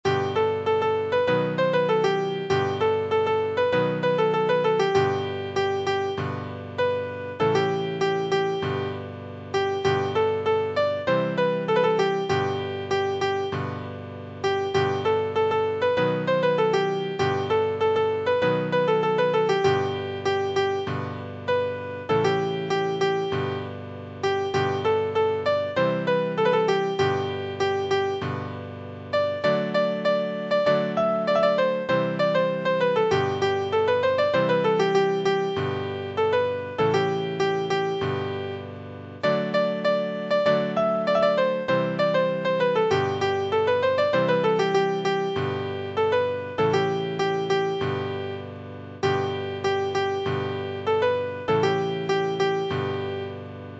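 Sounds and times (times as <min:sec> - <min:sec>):
piano: 0:00.0 - 0:53.7.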